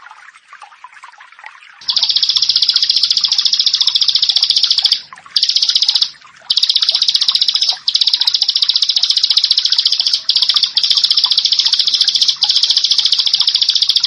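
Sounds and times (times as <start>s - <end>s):
bar-winged prinia song: 1.8s - 14.0s.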